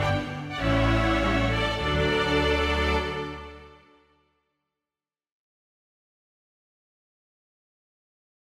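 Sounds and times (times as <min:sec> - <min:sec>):
string quintet playing a minuet: 0:00.0 - 0:04.1.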